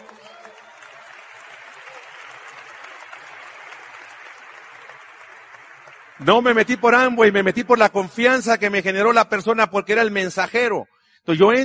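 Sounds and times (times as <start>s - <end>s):
audience applause: 0.0s - 7.7s
speech: 6.2s - 11.6s.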